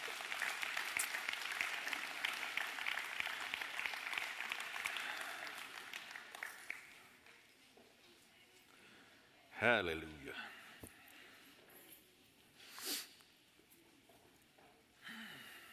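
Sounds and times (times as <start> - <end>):
audience applause for the kids: 0.0 - 7.2
speech: 9.6 - 10.6.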